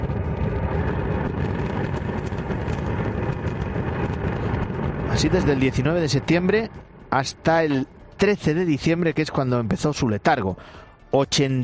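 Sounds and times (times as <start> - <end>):
roar of the Cumbre Vieja volcanic eruption: 0.0 - 9.0
speech: 5.2 - 11.6.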